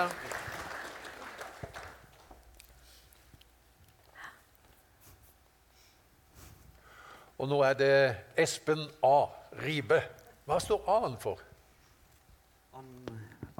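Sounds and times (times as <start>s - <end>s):
speech: 0.0s - 0.2s, 7.4s - 11.5s, 12.8s - 13.5s
audience applause: 0.0s - 2.5s.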